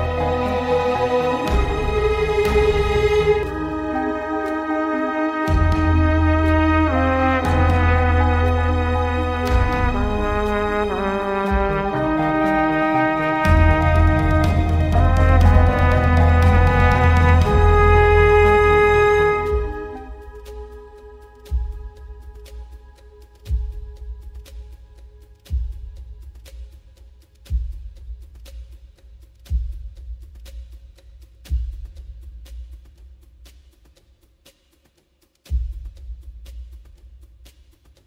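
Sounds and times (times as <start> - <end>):
soundtrack music: 0.0 - 24.8.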